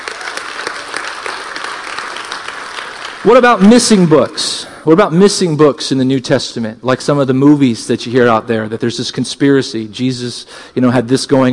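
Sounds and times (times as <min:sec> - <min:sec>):
crowd clapping: 0:00.0 - 0:04.4
speech: 0:03.2 - 0:11.5.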